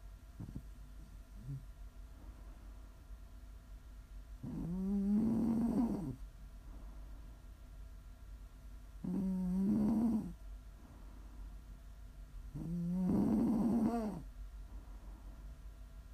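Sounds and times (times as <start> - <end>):
faint steady hum: 0.0 - 16.1
person snoring: 4.4 - 6.2, 9.0 - 10.4, 12.6 - 14.2.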